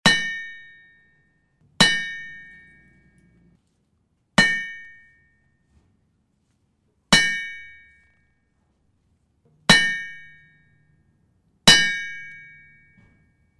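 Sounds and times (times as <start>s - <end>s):
large hammer striking an anvil: 0.0s - 3.6s, 4.4s - 6.0s, 7.1s - 8.6s, 9.5s - 13.5s.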